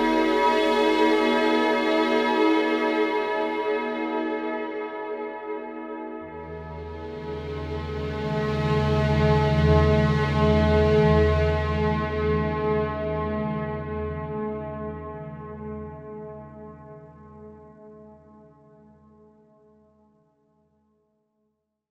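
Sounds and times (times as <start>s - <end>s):
ambient music: 0.0s - 4.1s, 6.3s - 16.0s.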